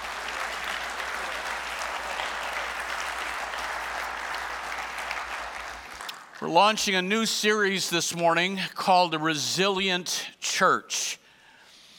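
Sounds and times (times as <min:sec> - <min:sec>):
church congregation applauding during a morning service: 0:00.0 - 0:07.1
speech: 0:06.4 - 0:11.2.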